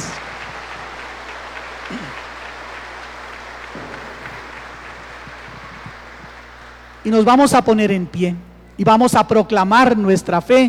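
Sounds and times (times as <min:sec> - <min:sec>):
applause: 0:00.0 - 0:08.3
speech: 0:07.0 - 0:10.6.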